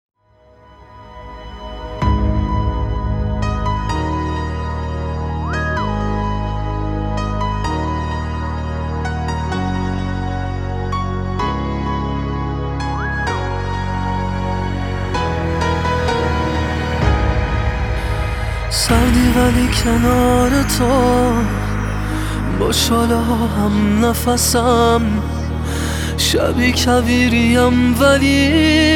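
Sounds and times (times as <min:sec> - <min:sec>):
sad music remix: 0:00.4 - 0:28.9.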